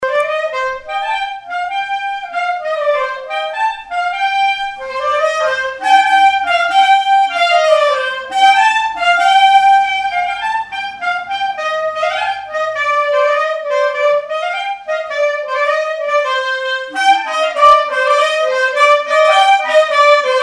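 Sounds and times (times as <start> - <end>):
clarinet playing: 0.0 - 20.4.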